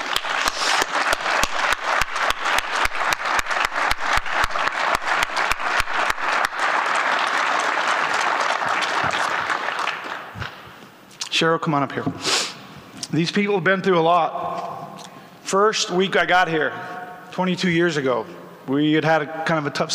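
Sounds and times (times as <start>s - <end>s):
audience applause: 0.0s - 10.6s
speech: 11.4s - 12.4s, 13.1s - 14.5s, 15.5s - 19.9s.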